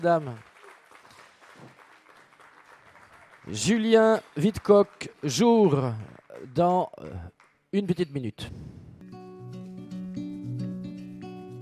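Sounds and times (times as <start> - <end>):
speech: 0.0 - 0.5, 3.4 - 8.8
audience clapping: 0.0 - 7.7.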